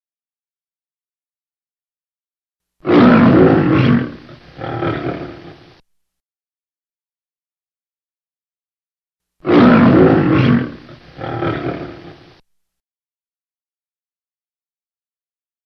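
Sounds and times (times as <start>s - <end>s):
lion roaring: 2.8s - 5.8s, 9.4s - 12.4s.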